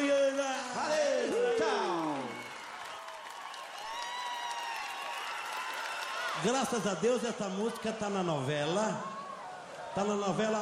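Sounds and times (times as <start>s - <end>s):
audience applause: 1.1s - 8.5s
speech: 6.4s - 9.1s, 10.0s - 10.6s.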